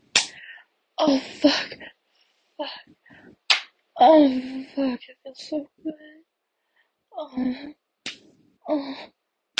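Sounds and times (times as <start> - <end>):
hand slapping bare skin: 0.1 - 0.4, 3.5 - 3.8, 8.0 - 8.4
speech: 1.0 - 1.9, 4.0 - 6.2, 7.2 - 7.8, 8.7 - 9.2.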